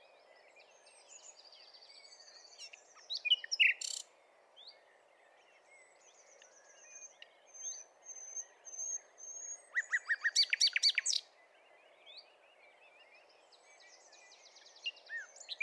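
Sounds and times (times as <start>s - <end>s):
Common nightingale Luscinia megarhynchos song: 0.0s - 15.6s.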